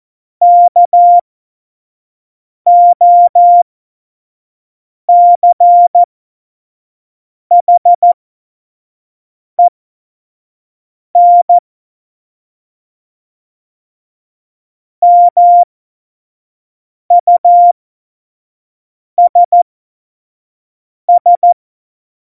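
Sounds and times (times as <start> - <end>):
CW Morse code beeps: 0.4 - 1.2, 2.7 - 3.6, 5.1 - 6.1, 7.5 - 8.2, 11.2 - 11.6, 15.0 - 15.7, 17.1 - 17.7, 19.2 - 19.6, 21.2 - 21.6.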